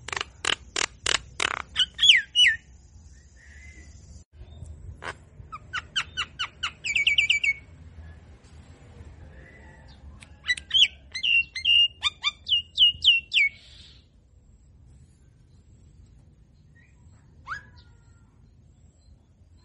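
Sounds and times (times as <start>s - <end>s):
Javan myna song with downslurred whistles and looped whistled notes: 1.7s - 2.7s, 5.5s - 7.7s, 9.3s - 14.1s, 16.8s - 18.3s.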